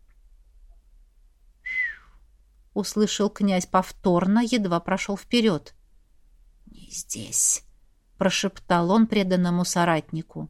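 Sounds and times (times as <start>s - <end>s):
soft familiar whistle: 1.6s - 2.2s
speech: 2.8s - 5.8s, 6.9s - 10.4s.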